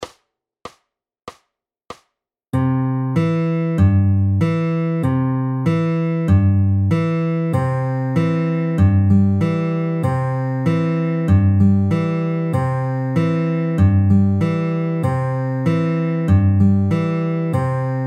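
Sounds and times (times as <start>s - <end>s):
slow fingerpicking patterns: 2.6s - 18.0s.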